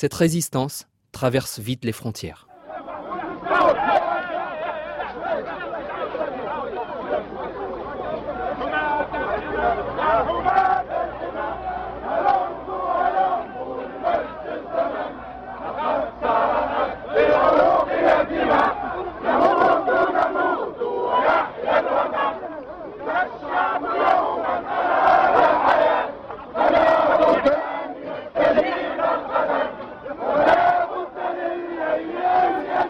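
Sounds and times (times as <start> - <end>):
speech: 0.0 - 2.5
crowd chanting during the Tunisian revolt: 2.5 - 32.8.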